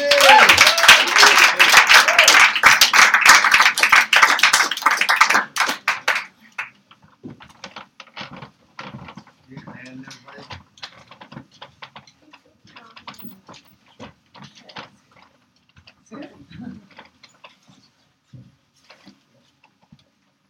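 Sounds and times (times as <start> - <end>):
evening audience applause: 0.0 - 6.7.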